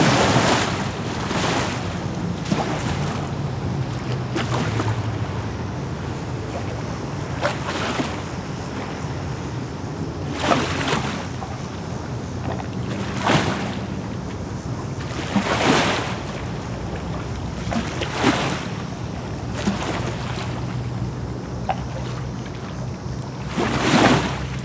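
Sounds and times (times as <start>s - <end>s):
boat passing by at Allens Landing in Houston: 0.0s - 24.6s.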